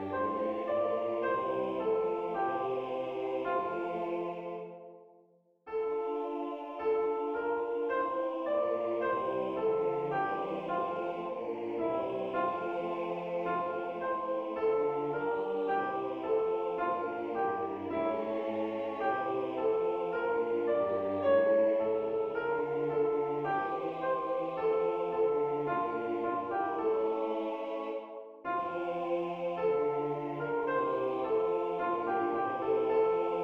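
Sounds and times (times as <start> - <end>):
soprano tutti singing together: 0.0 - 5.0, 5.8 - 33.4.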